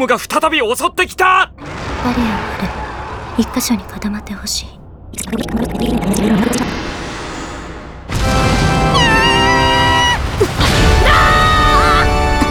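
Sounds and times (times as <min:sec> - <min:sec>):
speech: 0:00.0 - 0:02.8, 0:03.4 - 0:06.9
dense roaring wash of noise: 0:01.5 - 0:12.3
four people screaming: 0:01.6 - 0:04.2, 0:08.2 - 0:12.4.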